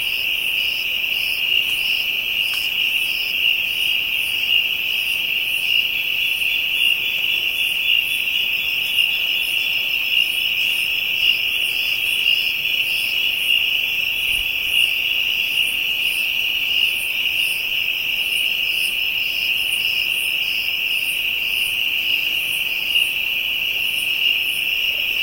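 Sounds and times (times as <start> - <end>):
African insects calling in a dense high-pitched drone: 0.0 - 25.2.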